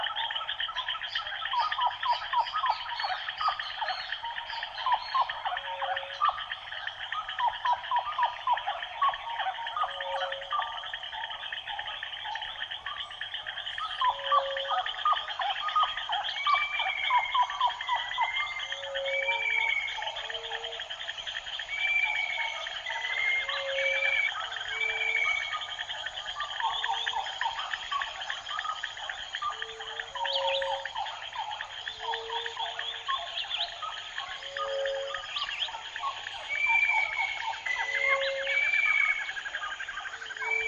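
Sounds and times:
rainforest ambience: 0.0 - 40.6.

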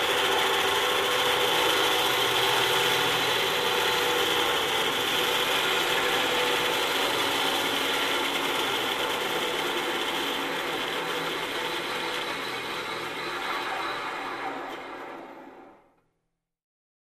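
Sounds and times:
bench cutting machine: 0.0 - 16.0.

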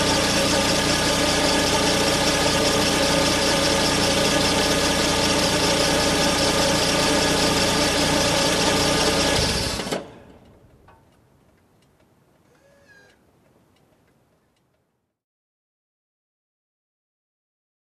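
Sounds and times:
old truck parking: 0.0 - 12.5.

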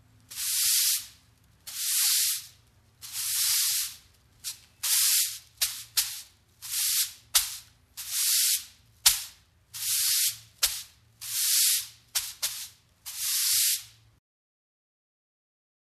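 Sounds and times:
broom sweeping: 0.3 - 14.0.

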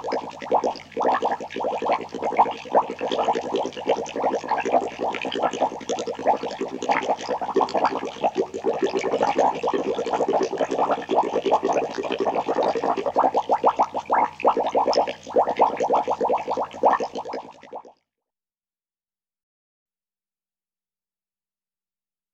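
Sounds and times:
bubbles in big tank: 0.0 - 18.0.

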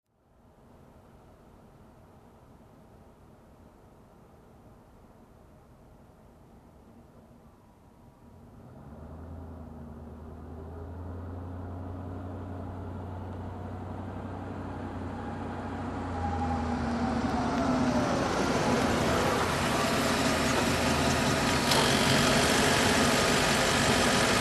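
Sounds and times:
car approaching and parking: 8.4 - 24.3.

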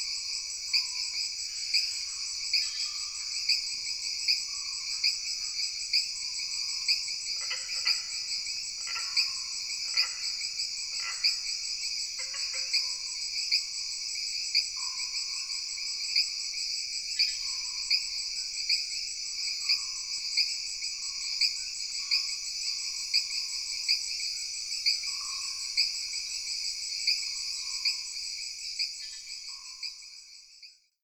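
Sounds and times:
jungle frogs: 0.0 - 30.9
jungle insects: 0.0 - 31.0.

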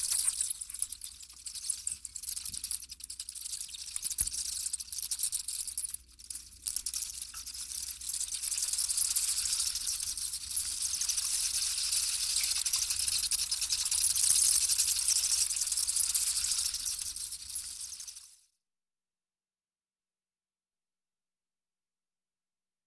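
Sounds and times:
mice and rats squeaking: 0.0 - 18.2.

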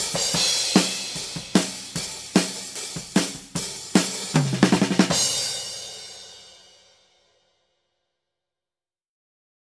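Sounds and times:
basic rock drum groove with open hi-hats: 0.0 - 7.3.

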